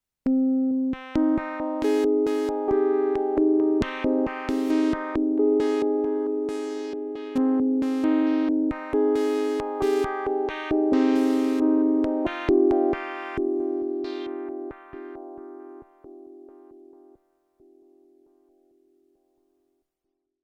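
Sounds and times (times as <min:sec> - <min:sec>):
Arturia MicroFreak V4 synthesizer presets: 0:01.2 - 0:17.2.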